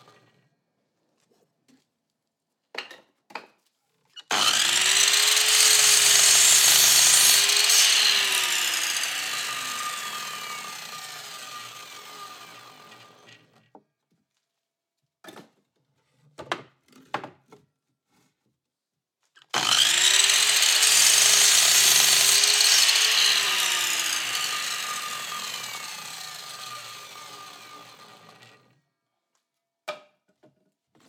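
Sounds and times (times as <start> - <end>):
circular saw: 4.3 - 13.4, 19.5 - 28.7.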